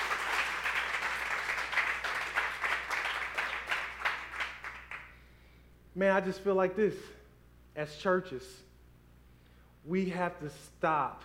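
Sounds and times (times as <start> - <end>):
audience applause: 0.0 - 5.1
speech: 6.0 - 7.2, 7.8 - 8.6, 9.8 - 11.2.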